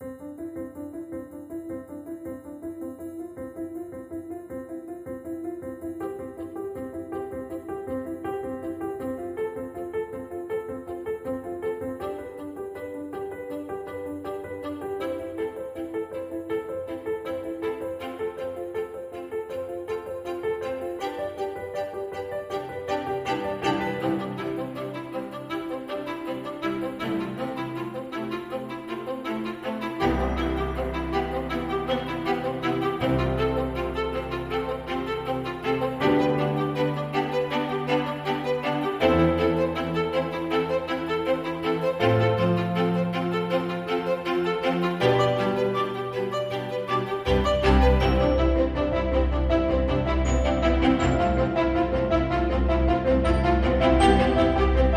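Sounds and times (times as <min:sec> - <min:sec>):
uplifting piano music: 0:00.0 - 0:54.9.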